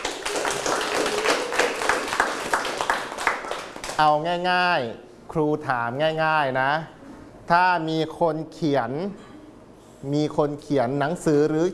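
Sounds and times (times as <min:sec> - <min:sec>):
group of people clapping in a classroom: 0:00.0 - 0:04.2
speech: 0:04.0 - 0:09.3, 0:10.0 - 0:11.7.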